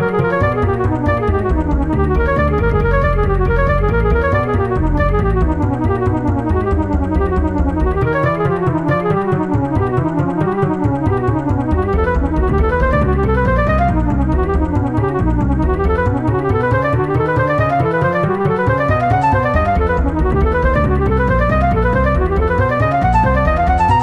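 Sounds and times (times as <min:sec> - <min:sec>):
unreal jazz flute lines playing: 0:00.0 - 0:24.0.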